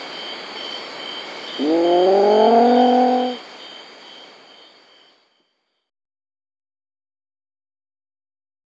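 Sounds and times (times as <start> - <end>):
Hydrolaetare schmidti frog: 0.0 - 5.9.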